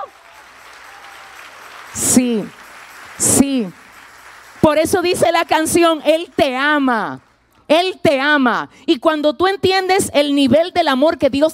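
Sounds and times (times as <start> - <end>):
audience applause: 0.0 - 6.8
speech: 2.2 - 2.6, 3.2 - 3.8, 4.6 - 11.5.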